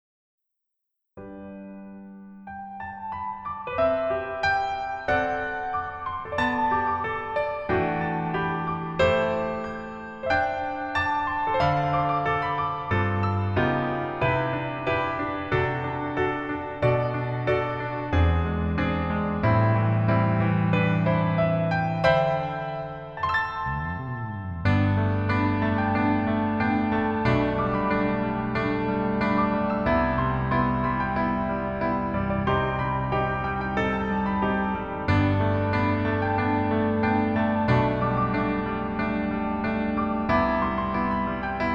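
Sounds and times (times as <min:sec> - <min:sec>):
piano melody backing track: 0:01.2 - 0:41.7.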